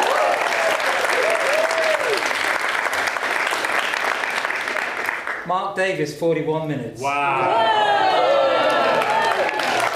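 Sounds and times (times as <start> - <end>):
round of applause: 0.0 - 5.5, 7.5 - 9.9
speech: 5.5 - 8.2.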